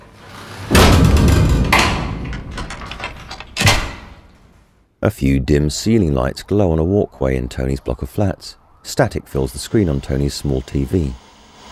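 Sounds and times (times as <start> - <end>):
front door shutting: 0.0 - 4.5
speech: 5.0 - 11.2.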